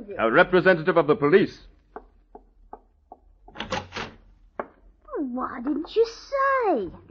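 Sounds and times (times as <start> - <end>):
speech: 0.2 - 1.7, 5.6 - 7.0
door opening with a rough scraping swing: 3.5 - 4.2.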